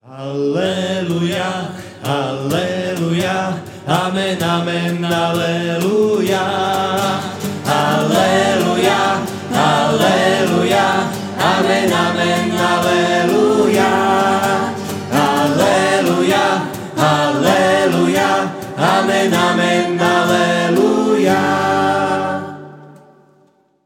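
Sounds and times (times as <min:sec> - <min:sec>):
religious song: 0:00.0 - 0:23.8.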